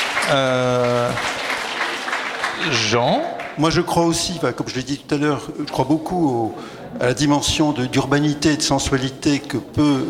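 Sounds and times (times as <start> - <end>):
audience applause at a panel discussion: 0.0 - 3.9
speech: 0.3 - 1.4, 2.6 - 10.0.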